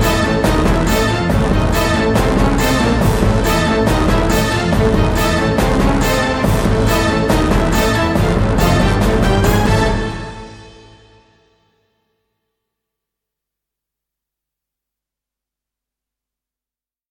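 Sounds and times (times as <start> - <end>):
progressive close fight battle music: 0.0 - 11.5.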